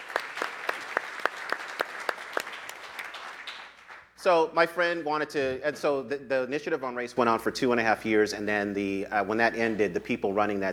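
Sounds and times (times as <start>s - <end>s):
audience applause: 0.0s - 4.1s
speech: 4.2s - 10.7s.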